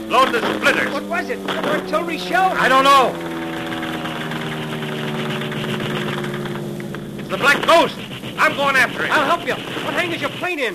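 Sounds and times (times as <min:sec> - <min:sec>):
airplane engine idling: 0:00.0 - 0:10.7
speech: 0:00.1 - 0:03.3, 0:07.3 - 0:10.7.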